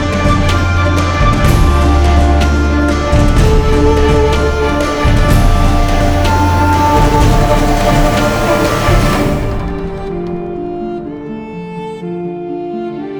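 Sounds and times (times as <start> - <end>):
cinematic exotic Amazon forest action world music: 0.0 - 12.3.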